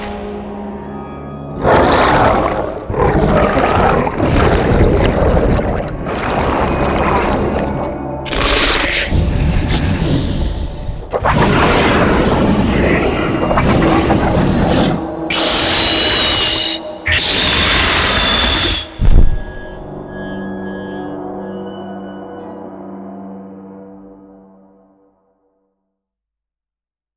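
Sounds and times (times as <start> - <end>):
creature sound effects: 1.6 - 19.2.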